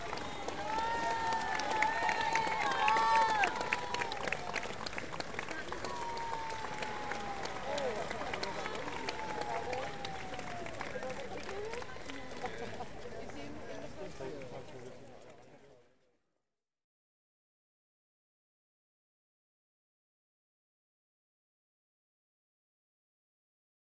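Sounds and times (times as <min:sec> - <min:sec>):
street crowd cheering at the London Marathon: 0:00.0 - 0:14.4
street crowd applause at the London Marathon: 0:00.0 - 0:16.0.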